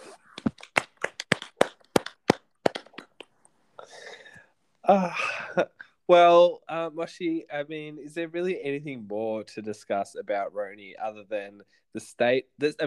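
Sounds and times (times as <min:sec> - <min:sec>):
sharp hand claps: 0:00.3 - 0:03.4
speech: 0:04.9 - 0:12.8.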